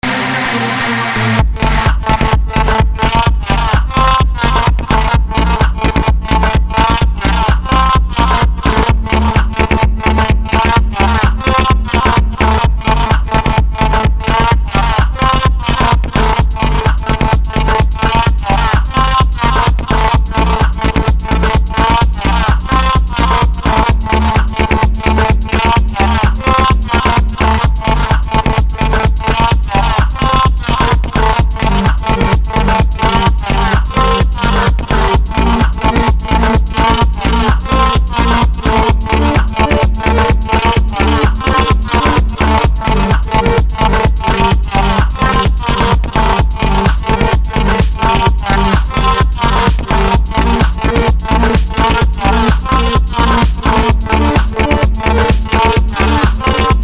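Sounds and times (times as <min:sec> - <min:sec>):
techno music: 0:00.0 - 0:56.8.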